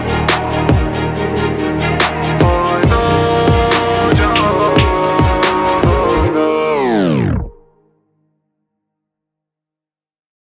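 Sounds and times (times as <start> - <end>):
trap remix: 0.1 - 7.7.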